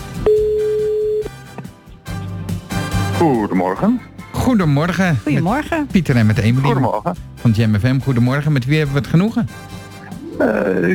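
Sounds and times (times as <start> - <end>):
ringback tone of an outgoing telephone call: 0.3 - 1.4
speech: 3.2 - 9.8, 10.4 - 10.9.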